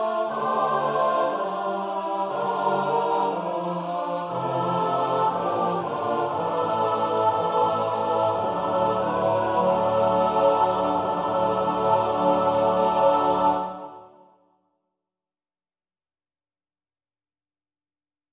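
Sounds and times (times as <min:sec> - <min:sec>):
SATB choir practice recording: 0:00.0 - 0:14.4.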